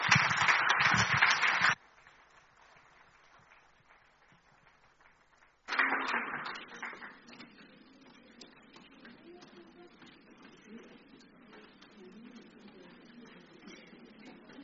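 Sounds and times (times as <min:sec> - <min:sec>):
audience applause: 0:00.0 - 0:07.3.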